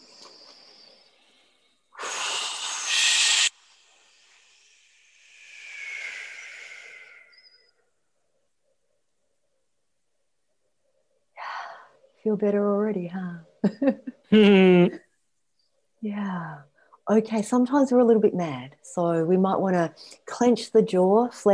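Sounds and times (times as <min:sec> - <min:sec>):
group exhaling with a whoosh: 0:02.0 - 0:07.5
speech: 0:12.2 - 0:15.0, 0:16.0 - 0:21.5.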